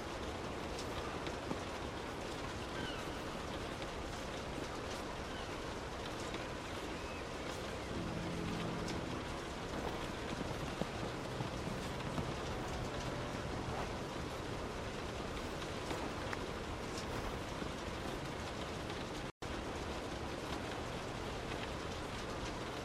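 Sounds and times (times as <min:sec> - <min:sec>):
rain pattering on a car: 0:00.0 - 0:22.8
faint low tones: 0:07.7 - 0:18.2
car engine and road noise: 0:07.9 - 0:16.2.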